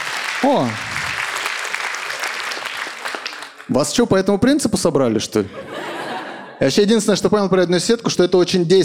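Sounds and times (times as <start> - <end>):
audience applauding at a stand-up comedy show: 0.0 - 3.8
speech: 0.4 - 0.9, 3.7 - 6.0, 6.6 - 8.8
laughter: 5.5 - 6.6.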